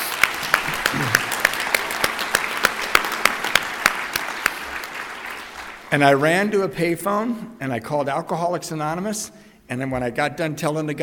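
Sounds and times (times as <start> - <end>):
audience applause: 0.0 - 6.2
speech: 5.9 - 11.0.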